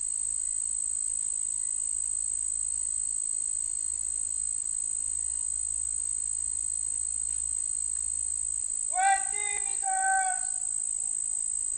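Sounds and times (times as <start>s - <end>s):
birds: 8.9s - 10.7s.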